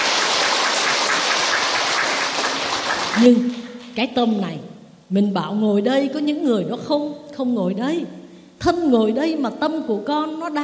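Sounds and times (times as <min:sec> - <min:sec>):
crowd applause: 0:00.0 - 0:04.0
speech: 0:03.2 - 0:10.6.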